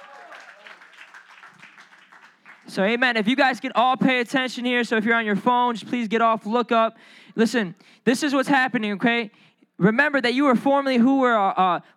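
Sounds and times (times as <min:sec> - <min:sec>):
audience hand clapping: 0:00.0 - 0:03.0
speech: 0:02.7 - 0:11.9.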